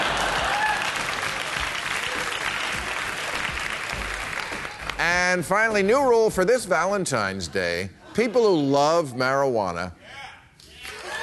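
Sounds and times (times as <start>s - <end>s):
audience applause: 0.0s - 5.0s
speech: 5.0s - 10.2s.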